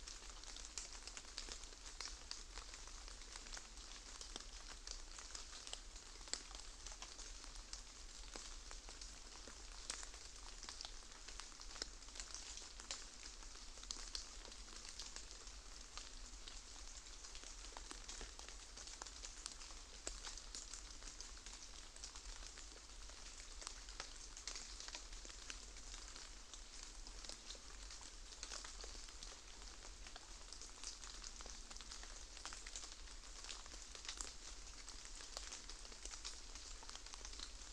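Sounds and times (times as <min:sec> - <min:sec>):
very light rain patters in the aftermath of rain: 0:00.0 - 0:37.7.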